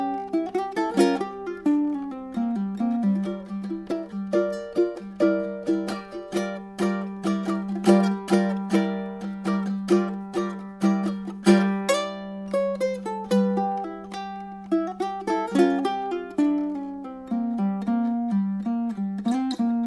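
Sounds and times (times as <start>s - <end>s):
ukulele: 0.0s - 19.8s.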